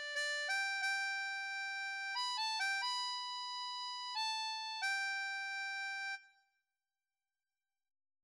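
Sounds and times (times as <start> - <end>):
harmonica melody in Do: 0.0 - 6.1.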